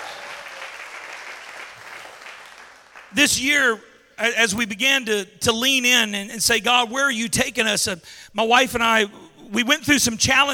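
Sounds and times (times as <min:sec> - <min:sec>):
church congregation applauding at NOLA Church during All In Sunday: 0:00.0 - 0:03.3
speech: 0:03.1 - 0:10.5.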